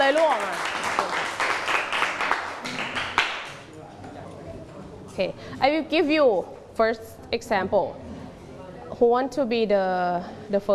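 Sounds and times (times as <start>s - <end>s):
group clapping hands: 0.0s - 3.7s
speech: 5.2s - 8.0s, 9.0s - 10.7s.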